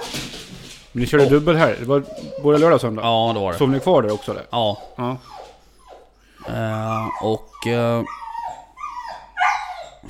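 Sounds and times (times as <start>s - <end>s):
speech: 1.0s - 5.4s, 6.4s - 8.2s
dog whimpering: 1.1s - 10.0s.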